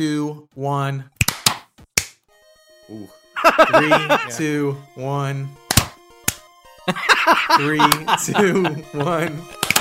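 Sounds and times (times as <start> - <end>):
speech: 0.0 - 1.1, 2.9 - 5.6, 6.9 - 9.6
laughter: 3.4 - 4.4, 6.9 - 9.4
hand claps out of sync: 5.7 - 6.4, 7.9 - 8.1, 9.6 - 9.7
overlapping voices: 7.4 - 8.4.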